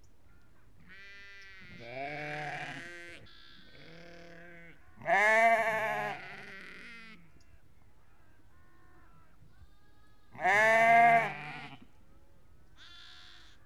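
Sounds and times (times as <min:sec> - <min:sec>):
sheep bleating: 0:00.9 - 0:07.2, 0:10.4 - 0:11.9, 0:12.8 - 0:13.6.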